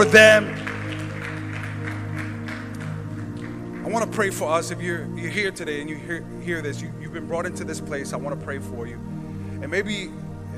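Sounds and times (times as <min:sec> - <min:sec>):
speech: 0:00.0 - 0:00.6, 0:03.9 - 0:10.2
audience round of applause: 0:00.0 - 0:04.7.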